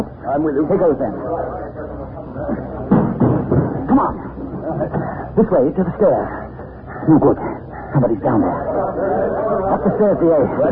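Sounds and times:
murmuring voices: 0.0s - 10.6s
speech: 0.3s - 2.8s, 4.0s - 6.4s, 7.0s - 10.6s
chair thrown against a door: 2.9s - 4.2s
laughter: 7.1s - 10.6s.

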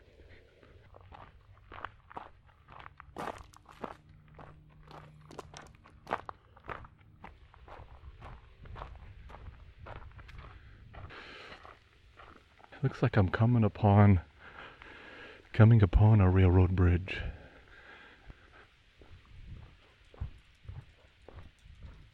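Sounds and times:
footsteps crunching along an outdoor path: 0.1s - 12.8s, 18.2s - 22.1s
speech: 12.8s - 14.3s, 15.6s - 17.4s.

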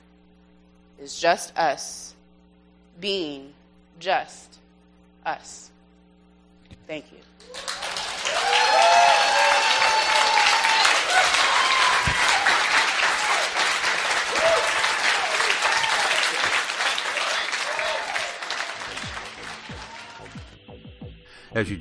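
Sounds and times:
speech: 1.0s - 2.2s, 3.0s - 4.6s, 5.2s - 5.7s, 6.9s - 7.7s, 21.6s - 21.7s
whoops and cheering voices: 7.4s - 20.5s
standing ovation from a large audience after a presentation: 7.4s - 20.6s.

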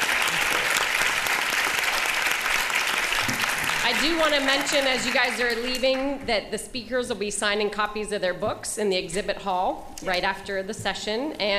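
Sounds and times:
audience applause: 0.0s - 6.0s
speech: 3.9s - 11.5s.

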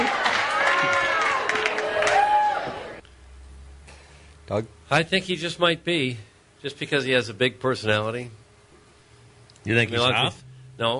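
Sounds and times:
crowd cheering: 0.0s - 3.0s
whoops and high shouting voices: 0.0s - 3.0s
speech: 4.5s - 8.4s, 9.6s - 10.9s.

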